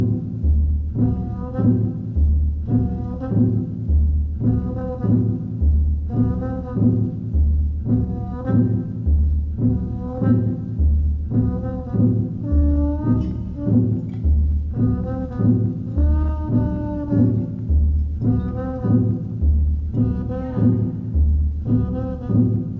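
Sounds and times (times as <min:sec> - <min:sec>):
apartment jazz music: 0:00.0 - 0:22.7.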